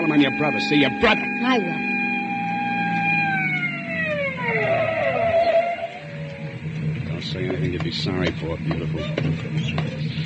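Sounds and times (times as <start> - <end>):
speech: 0.0 - 1.9, 7.3 - 10.2
police car siren winding down: 0.0 - 7.8
constant low rumbling background: 0.0 - 10.2.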